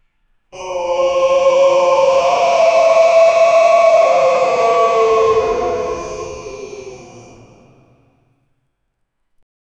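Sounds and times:
hellish yelling: 0:00.6 - 0:08.1.

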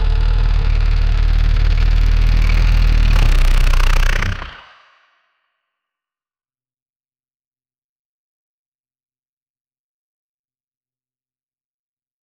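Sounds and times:
fictional diesel engine cold start: 0:00.0 - 0:04.6.

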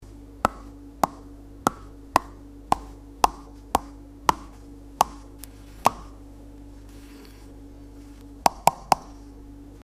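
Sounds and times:
chopping: 0:00.4 - 0:05.2.

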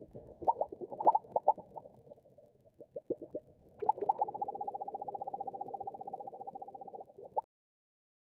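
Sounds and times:
soft delicate aquatic sound: 0:00.0 - 0:07.5.

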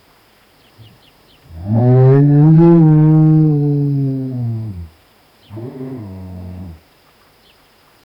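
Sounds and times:
lion roaring loudly in the savannah: 0:01.5 - 0:04.9, 0:05.5 - 0:06.8.

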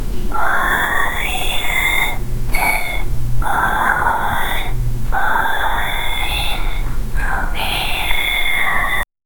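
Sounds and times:
cat whispering: 0:00.3 - 0:09.1.

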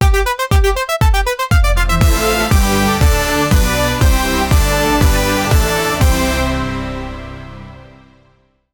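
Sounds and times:
brief EDM-inspired fanfare: 0:00.0 - 0:08.3.

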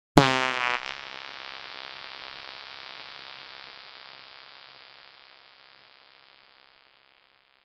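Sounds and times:
ultra short fart: 0:00.2 - 0:01.4.

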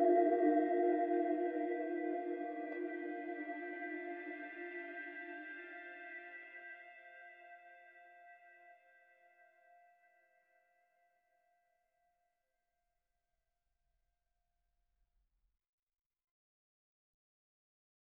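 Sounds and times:
mystical spiritual music: 0:00.0 - 0:12.2.

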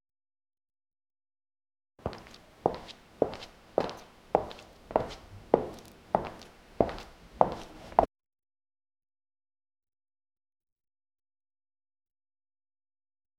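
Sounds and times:
footsteps clacking while walking in: 0:02.0 - 0:08.1.

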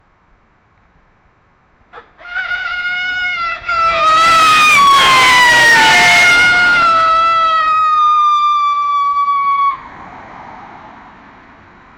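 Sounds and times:
two cars crashing head-on: 0:02.8 - 0:08.8.

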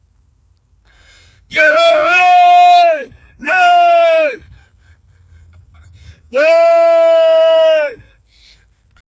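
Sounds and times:
man shouting while running: 0:01.5 - 0:04.4, 0:06.3 - 0:08.0.

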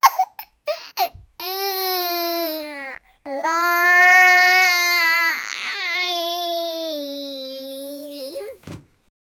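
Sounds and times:
happy child: 0:02.4 - 0:08.6.

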